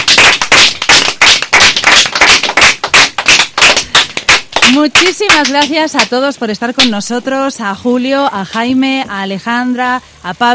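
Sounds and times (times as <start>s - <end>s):
crowd applauding loudly: 0.0s - 4.8s
speech: 4.9s - 10.5s.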